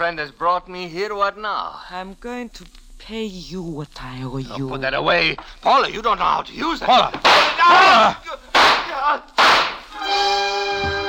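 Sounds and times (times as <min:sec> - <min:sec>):
speech: 0:00.0 - 0:08.3
gunshots from a pistol: 0:07.2 - 0:10.0.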